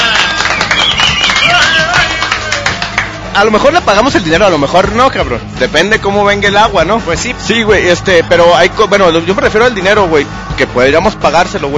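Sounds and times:
clapping applause: 0.0s - 3.4s
speech: 3.4s - 11.7s.

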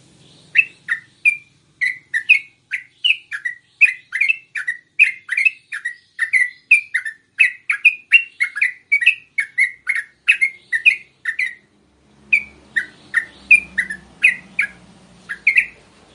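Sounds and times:
yellow-vented bulbul song: 0.0s - 16.1s.

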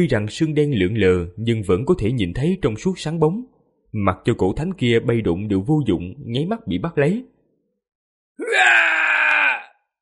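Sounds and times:
speech: 0.0s - 7.3s, 8.4s - 8.9s
agonized scream of pain: 8.4s - 9.9s.

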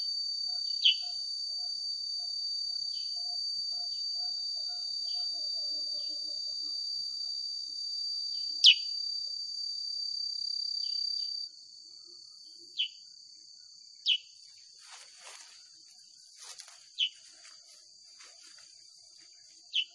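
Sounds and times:
sooty-headed bulbul song of sharp downslurred chirps: 0.8s - 1.1s, 8.6s - 8.9s, 12.8s - 13.0s, 14.1s - 14.3s, 17.0s - 17.2s, 19.7s - 19.9s.

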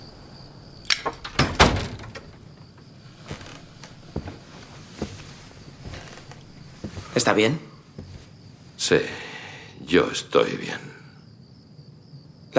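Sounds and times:
door creaking open: 0.8s - 7.3s
door latch and handle clunks: 0.9s - 2.7s
soft knocks and footsteps of a priest entering: 1.0s - 8.8s
speech: 7.2s - 7.7s, 8.9s - 9.3s, 9.9s - 10.9s.

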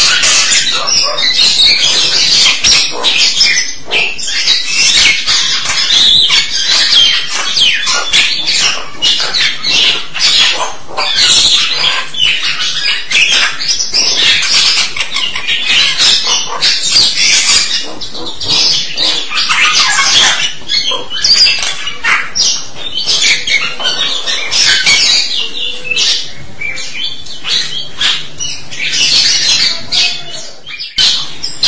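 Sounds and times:
starling singing: 0.0s - 31.6s.

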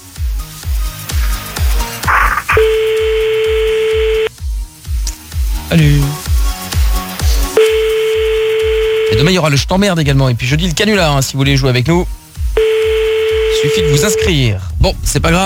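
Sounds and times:
continuous thumping rhythmic beat: 1.6s - 7.0s, 7.6s - 9.4s, 12.3s - 15.0s
French telephone ringback tone on an unanswered prank call: 2.5s - 4.3s, 7.6s - 9.3s, 12.6s - 14.4s
speech: 5.7s - 6.2s, 9.1s - 12.2s, 13.6s - 15.4s.

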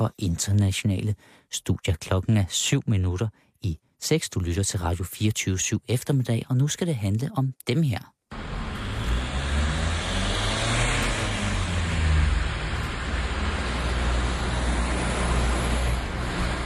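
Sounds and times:
speech: 0.0s - 8.2s
car: 8.3s - 16.6s.

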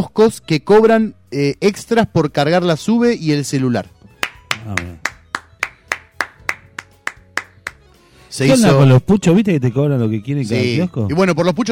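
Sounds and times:
speech: 0.0s - 4.0s, 4.6s - 5.1s, 8.3s - 11.7s
applause, hands clapping: 4.2s - 7.9s.

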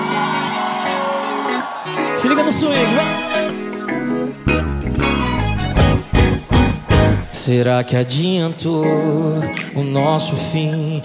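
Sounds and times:
sustained musical tones: 0.0s - 7.8s
concert crowd shouting and cheering: 0.0s - 8.6s
speech: 2.2s - 3.6s, 7.5s - 11.0s.

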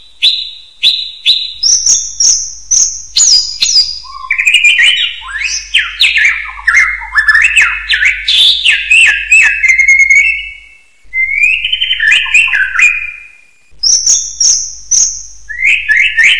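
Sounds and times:
bird song: 0.0s - 16.3s.

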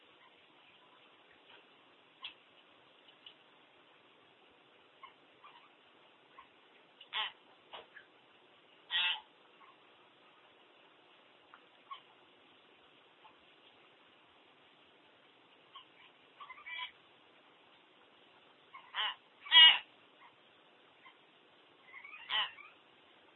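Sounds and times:
common hill myna squawking: 7.1s - 7.4s, 8.9s - 9.8s, 15.7s - 17.0s, 18.7s - 20.4s, 21.8s - 22.8s.

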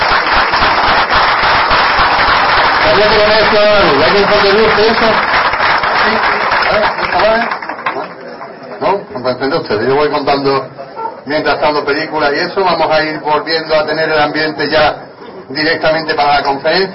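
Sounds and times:
audience applause: 0.0s - 8.9s
speech: 3.0s - 5.4s, 6.0s - 7.6s, 9.2s - 16.9s.

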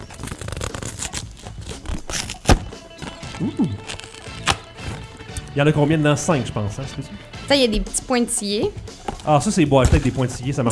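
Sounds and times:
box of packaged microphones being opened, rustling and scraping: 0.0s - 5.4s
speech: 3.4s - 3.8s, 5.6s - 10.6s.

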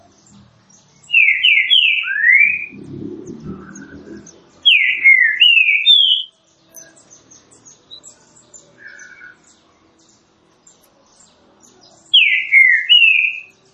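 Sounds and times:
faint chirps: 0.0s - 13.7s
low background noise: 0.0s - 13.7s
green-winged saltator whistled song: 1.1s - 6.3s, 12.2s - 13.5s.

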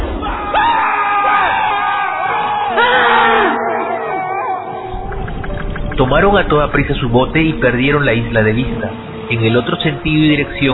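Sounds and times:
group of frightened soldiers on fire screaming in agony: 0.2s - 4.9s
speech: 6.1s - 10.7s.

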